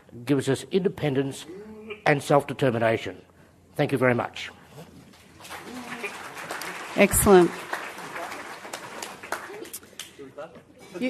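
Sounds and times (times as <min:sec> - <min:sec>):
speech: 0:00.2 - 0:04.6, 0:07.0 - 0:07.6
audience clapping for the other team: 0:05.1 - 0:10.2.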